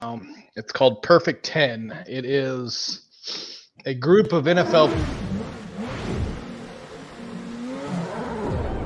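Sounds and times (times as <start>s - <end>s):
speech: 0.0s - 5.3s
IndyCar race car engines roaring at the start of the Gateway race: 4.6s - 8.8s.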